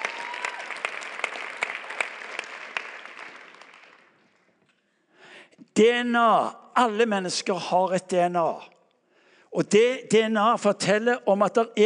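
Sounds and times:
crowd clapping: 0.0 - 4.7
speech: 5.8 - 8.7, 9.6 - 11.8.

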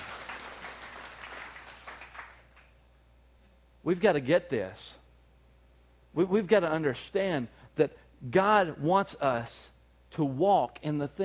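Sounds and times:
audience clapping: 0.0 - 2.7
speech: 3.8 - 5.0, 6.1 - 11.2.

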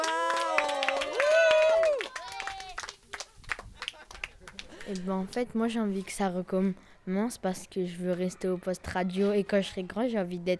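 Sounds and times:
people cheering: 0.0 - 4.7
audience applause: 0.0 - 5.0
speech: 4.9 - 10.5.

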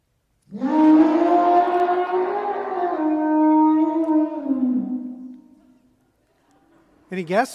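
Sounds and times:
elephant trumpeting: 0.5 - 5.4.

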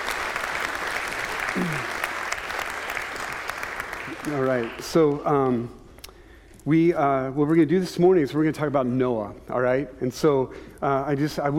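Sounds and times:
audience round of applause: 0.0 - 5.3
speech: 1.6 - 2.0, 4.2 - 5.8, 6.6 - 11.5.

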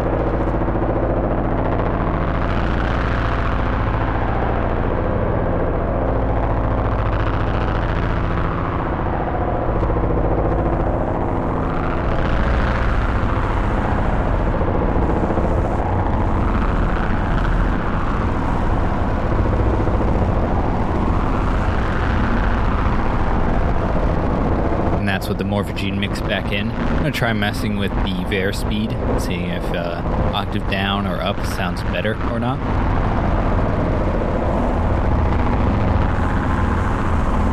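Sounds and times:
synthesizer drone layer without morphogen: 0.0 - 37.5
speech: 25.5 - 33.1.

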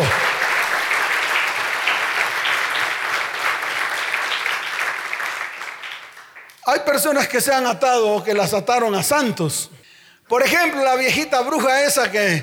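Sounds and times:
audience applause: 0.0 - 6.6
speech: 6.8 - 12.4.

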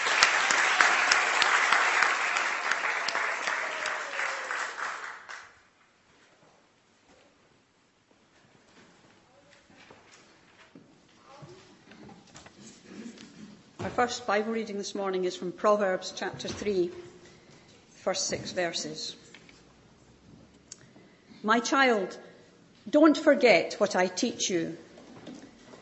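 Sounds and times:
church congregation applauding Sunday school and creche leaders: 0.0 - 5.7
speech: 13.9 - 17.0, 18.0 - 19.2, 21.4 - 22.3, 22.9 - 24.8.

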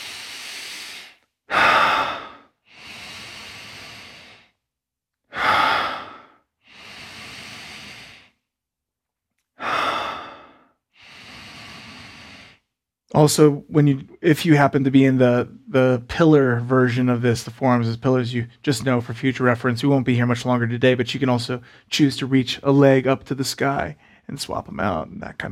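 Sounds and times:
deep belly breathing during a yoga practice: 0.0 - 8.5, 9.6 - 12.8, 21.6 - 21.9, 24.0 - 24.3
speech: 13.1 - 25.5.

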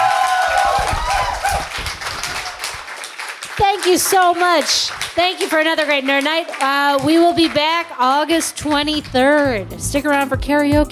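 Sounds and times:
audience applause: 0.0 - 7.8
speech: 3.8 - 10.9.

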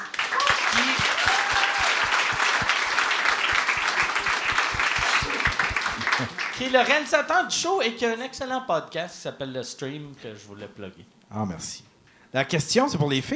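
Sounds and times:
audience applause: 0.0 - 7.0
faint cheers and voices: 0.3 - 2.2
speech: 6.6 - 13.3.

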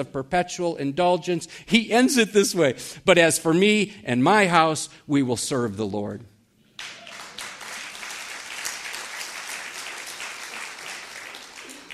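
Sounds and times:
speech: 0.0 - 6.3
audience applause: 6.8 - 11.9.

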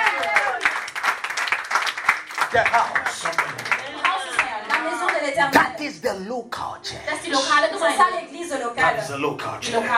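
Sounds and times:
audience clapping hands: 0.0 - 5.6
speech: 2.5 - 3.9, 5.3 - 9.9.

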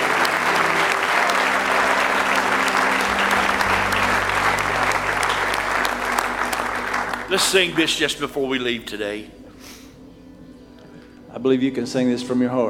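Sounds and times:
audience hand clapping: 0.0 - 9.2
speech: 7.3 - 9.4, 11.4 - 12.6.

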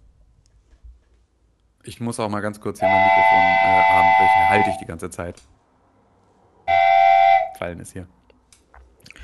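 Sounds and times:
speech: 1.8 - 5.6, 7.6 - 8.2
whistle being blown: 2.8 - 4.9, 6.7 - 7.6.

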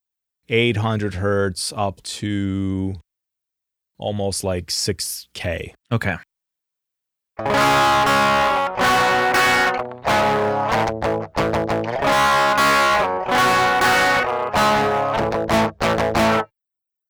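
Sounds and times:
speech: 0.5 - 3.0, 4.0 - 6.3, 7.4 - 8.2
band-pass filtered crunchy distorted electric guitar chugging chords: 7.4 - 16.5.

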